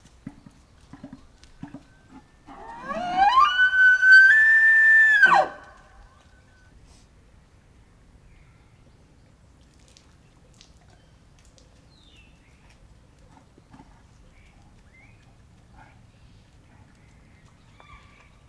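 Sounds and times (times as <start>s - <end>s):
male elk Cervus elaphus canadensis bugling: 2.4s - 5.8s.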